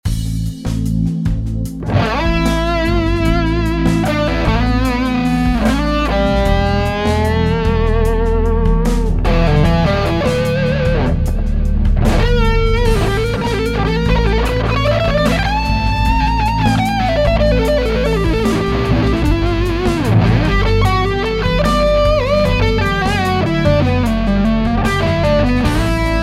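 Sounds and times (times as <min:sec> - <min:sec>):
lead melody: 0:00.1 - 0:26.2.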